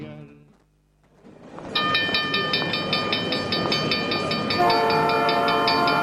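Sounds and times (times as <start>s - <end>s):
regional train rumbling past: 1.2s - 6.0s
regional train horn blast: 4.5s - 6.0s.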